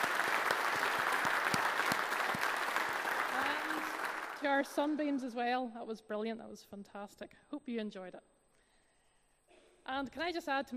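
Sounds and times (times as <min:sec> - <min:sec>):
audience applause: 0:00.0 - 0:05.0
speech: 0:04.4 - 0:08.3, 0:09.9 - 0:10.7.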